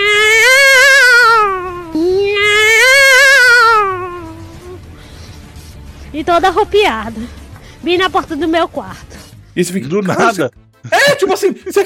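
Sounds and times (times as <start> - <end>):
cat yowling: 0.0 - 4.8
speech: 6.2 - 11.8.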